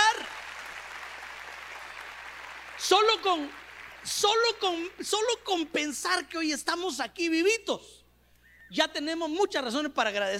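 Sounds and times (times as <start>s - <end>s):
audience applause: 0.0s - 4.9s
speech: 2.8s - 8.0s, 8.7s - 10.3s.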